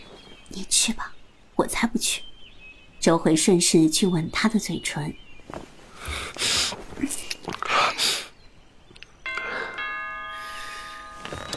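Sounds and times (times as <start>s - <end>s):
speech: 0.7s - 2.3s, 3.0s - 7.2s
doorbell ringing: 9.2s - 11.5s.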